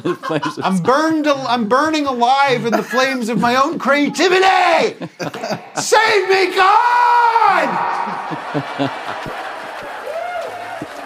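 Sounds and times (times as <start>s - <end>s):
laughter: 0.0s - 1.5s, 2.4s - 11.0s
speech: 0.0s - 9.4s
audience cheering: 5.6s - 11.0s.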